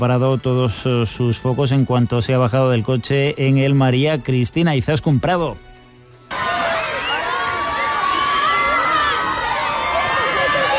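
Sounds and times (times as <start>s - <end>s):
speech: 0.0s - 5.7s
crowd cheering at red carpet arrival: 6.3s - 10.7s.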